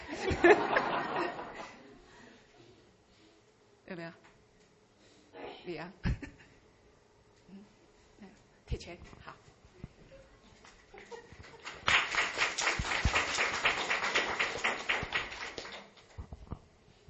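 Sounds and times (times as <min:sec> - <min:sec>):
laughter: 0:00.0 - 0:02.0, 0:10.9 - 0:11.8
speech: 0:04.0 - 0:04.3, 0:05.7 - 0:06.2, 0:08.8 - 0:09.5
audience applause: 0:11.4 - 0:16.2.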